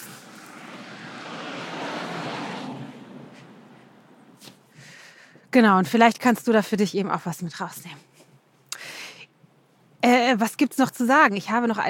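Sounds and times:
car driving past: 0:00.0 - 0:04.4
speech: 0:05.5 - 0:08.1, 0:10.3 - 0:11.8.

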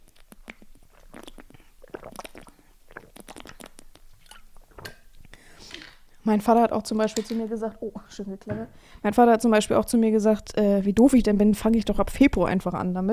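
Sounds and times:
person taking a sip of water and swallowing: 0:00.0 - 0:06.2
soft breaths: 0:05.3 - 0:06.3, 0:08.6 - 0:09.2
speech: 0:06.3 - 0:13.1.

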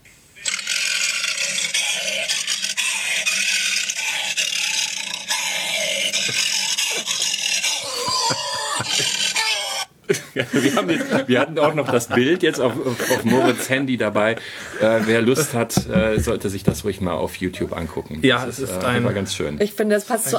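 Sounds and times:
man roaring like a lion into a tin bin: 0:00.4 - 0:09.9
laughter: 0:05.4 - 0:16.4
speech: 0:10.4 - 0:20.3.

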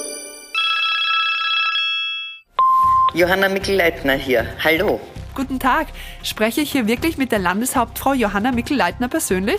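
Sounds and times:
telephone ringing with an electronic tone: 0:00.2 - 0:02.5
speech: 0:03.2 - 0:09.5.

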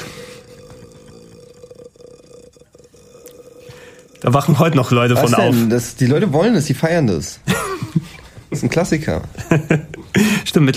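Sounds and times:
voice imitating a horror ghost's croak: 0:00.1 - 0:05.8
speech: 0:04.2 - 0:07.6, 0:08.6 - 0:10.7
laughter: 0:09.3 - 0:10.5.

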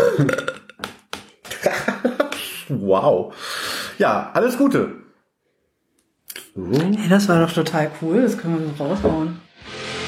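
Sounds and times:
loud croaking burp: 0:00.0 - 0:00.8
speech: 0:00.2 - 0:00.5, 0:02.9 - 0:05.1, 0:06.6 - 0:09.7.

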